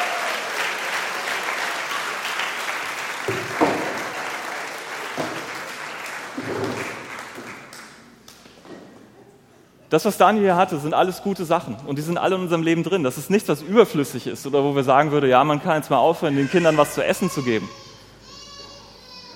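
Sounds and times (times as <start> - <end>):
audience applause: 0.0 - 8.2
speech: 9.9 - 17.8.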